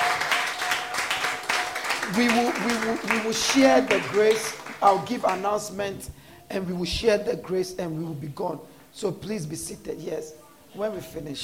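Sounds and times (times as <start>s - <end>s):
audience clapping in praise: 0.0s - 5.8s
speech: 2.1s - 11.4s.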